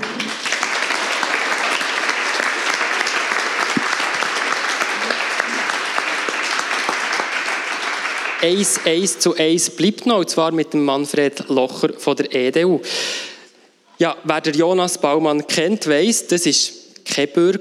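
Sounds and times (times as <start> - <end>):
audience applause: 0.0 - 9.1
speech: 8.4 - 13.2, 14.0 - 17.6.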